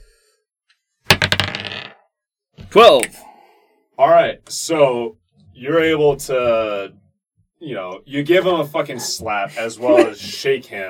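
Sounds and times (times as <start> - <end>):
dice rolling on a hard table: 1.1 - 2.0
speech: 2.8 - 3.2, 4.0 - 7.0, 7.6 - 10.8.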